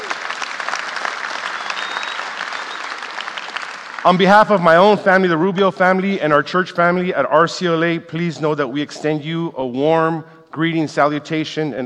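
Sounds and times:
audience applause: 0.0 - 5.0
speech: 4.0 - 11.8.

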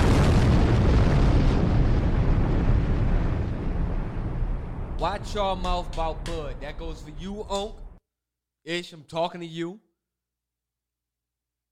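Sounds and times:
bomb explosion sound effect: 0.0 - 8.0
speech: 5.0 - 7.8, 8.6 - 9.8.

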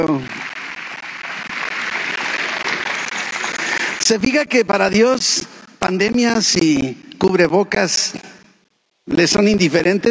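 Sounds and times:
speech: 0.0 - 0.4, 4.0 - 8.4, 9.1 - 10.0
audience applauding: 0.0 - 4.4.

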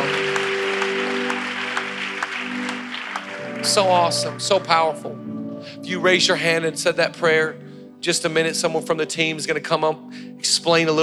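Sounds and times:
audience clapping: 0.0 - 5.4
speech: 3.6 - 11.0.

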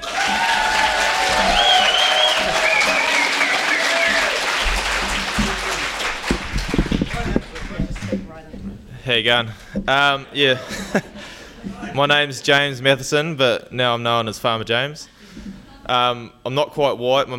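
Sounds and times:
audience whistles and cheers: 0.0 - 5.2
audience applause: 0.0 - 8.3
speech: 9.1 - 11.2, 12.0 - 15.1, 15.9 - 17.3
laughter: 10.4 - 12.0.

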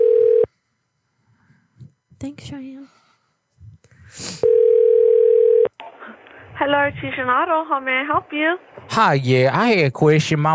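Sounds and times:
telephone dial tone: 0.0 - 0.5, 4.4 - 5.7
soft breathy hiss: 0.5 - 4.5, 5.8 - 7.5
speech: 2.2 - 3.0, 6.6 - 10.5.

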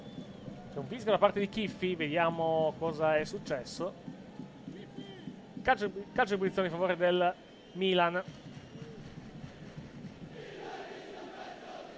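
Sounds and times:
speech: 0.8 - 4.1, 5.6 - 8.4
Bologna football supporters chanting against Milan: 10.3 - 11.9.

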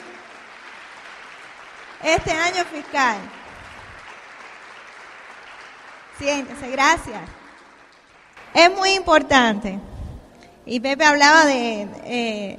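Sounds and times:
audience applause: 0.0 - 8.5
speech: 2.0 - 3.4, 6.2 - 7.4, 8.5 - 9.9, 10.6 - 12.5.

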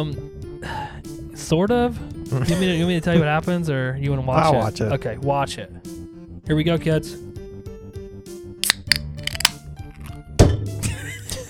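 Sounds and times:
speech: 0.0 - 0.8, 1.4 - 5.8, 6.5 - 7.2
empty can knocked off onto floor: 8.6 - 10.1.

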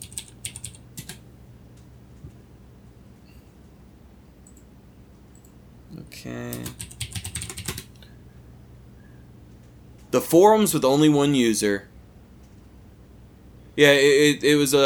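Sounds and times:
computer keyboard clacking as a search query is typed: 0.0 - 1.2, 6.5 - 8.0
speech: 5.9 - 6.9, 10.2 - 11.9, 13.8 - 14.8.

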